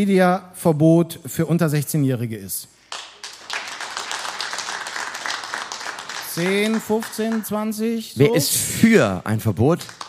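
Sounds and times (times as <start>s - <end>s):
speech: 0.0s - 2.8s, 6.4s - 10.0s
audience applause: 2.9s - 7.6s, 9.8s - 10.0s.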